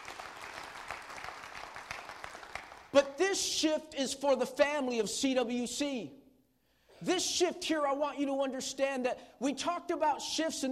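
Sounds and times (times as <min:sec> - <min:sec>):
audience round of applause: 0:00.0 - 0:02.9
speech: 0:02.9 - 0:06.2, 0:07.0 - 0:10.7.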